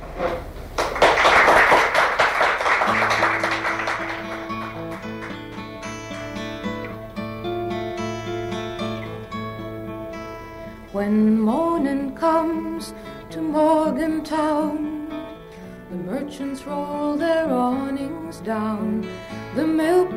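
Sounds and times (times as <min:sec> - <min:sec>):
audience applause welcoming a singer: 0:00.8 - 0:06.9
instrumental music: 0:02.8 - 0:20.1.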